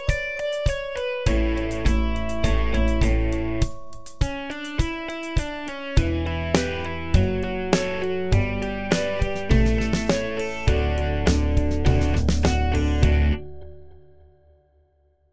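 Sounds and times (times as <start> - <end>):
little slow groove: 0.0 - 13.6.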